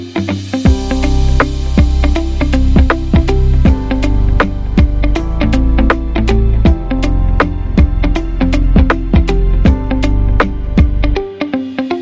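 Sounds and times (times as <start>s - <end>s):
corporate hip hop music: 0.2s - 11.9s.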